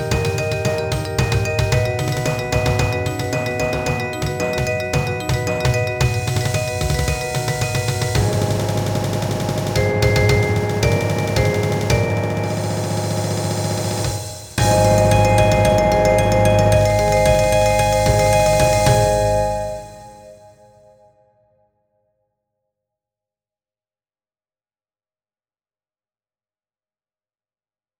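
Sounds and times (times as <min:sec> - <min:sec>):
percussion: 0:00.0 - 0:20.6.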